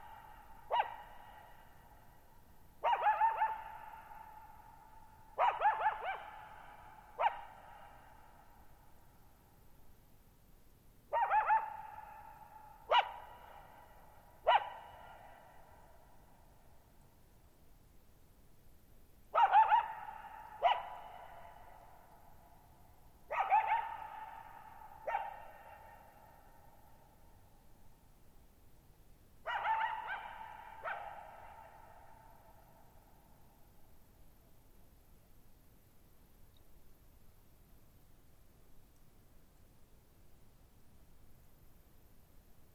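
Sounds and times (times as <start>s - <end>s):
lone coyote barking, yipping and howling: 0.0s - 2.1s, 2.8s - 8.5s, 11.1s - 16.2s, 19.3s - 22.3s, 23.3s - 27.2s, 29.4s - 32.8s.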